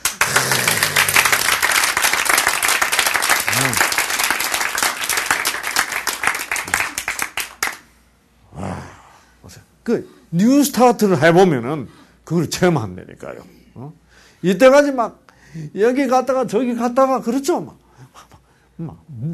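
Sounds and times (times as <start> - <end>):
crowd applause: 0.0 - 7.8
voice murmuring: 3.5 - 3.9
speech: 9.9 - 19.3.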